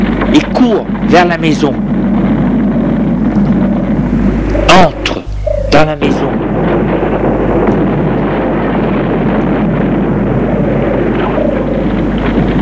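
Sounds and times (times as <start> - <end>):
roaring flames of a house fire: 0.0 - 12.6
speech: 0.4 - 1.9, 5.8 - 6.4.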